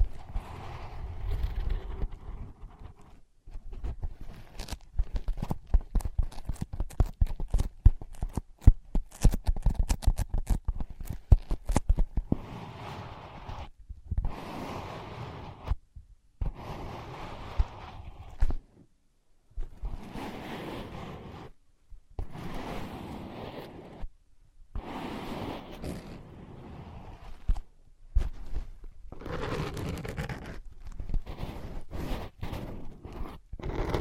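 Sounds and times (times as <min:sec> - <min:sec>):
soft scratching and rubbing on ear pads: 0:00.0 - 0:15.8, 0:16.4 - 0:18.9, 0:19.5 - 0:24.1, 0:24.7 - 0:33.9
tapping on ear pads: 0:05.0 - 0:12.4.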